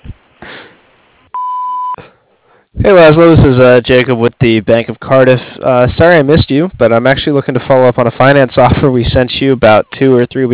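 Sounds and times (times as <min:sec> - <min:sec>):
answering machine beep after voicemail greeting: 0:01.4 - 0:02.0
speech: 0:02.9 - 0:10.5.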